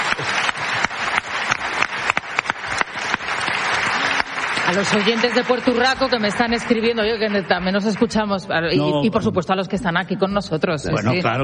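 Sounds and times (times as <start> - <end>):
audience applause: 0.0 - 8.8
speech: 4.7 - 11.4.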